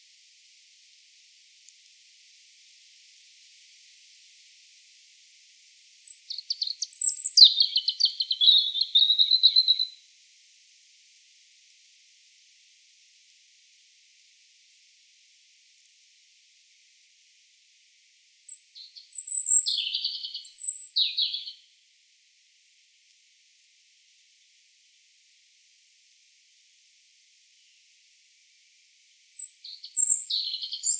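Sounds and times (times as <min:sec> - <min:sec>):
European robin song: 0:06.0 - 0:10.0, 0:18.4 - 0:21.6, 0:29.4 - 0:30.9.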